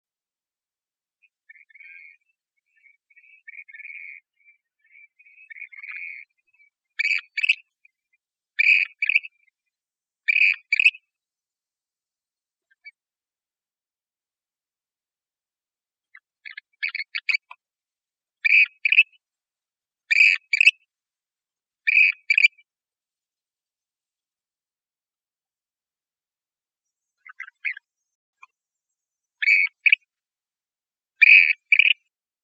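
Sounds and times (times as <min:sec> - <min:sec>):
western grebe rasping advertising calls: 0:01.5 - 0:07.6, 0:08.6 - 0:09.3, 0:10.3 - 0:11.0, 0:18.4 - 0:19.2, 0:20.1 - 0:20.7, 0:21.9 - 0:22.6, 0:29.4 - 0:30.0, 0:31.2 - 0:32.0.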